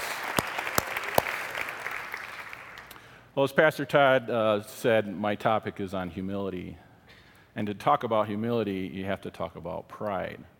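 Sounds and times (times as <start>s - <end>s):
room full of people applauding: 0.0s - 2.9s
speech: 3.4s - 6.8s, 7.6s - 10.5s.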